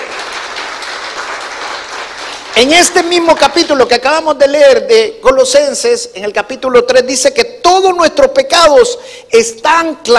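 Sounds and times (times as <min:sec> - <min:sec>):
audience applause: 0:00.0 - 0:03.1
speech: 0:02.6 - 0:10.1.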